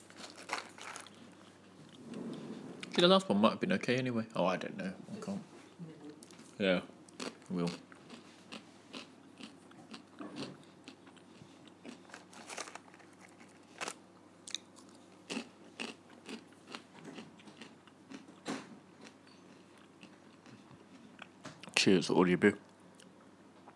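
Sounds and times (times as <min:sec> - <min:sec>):
crunchy eating and chewing: 0:00.0 - 0:03.0, 0:06.2 - 0:21.8
speech: 0:03.0 - 0:05.5, 0:06.6 - 0:06.9, 0:07.5 - 0:07.9, 0:21.9 - 0:22.7.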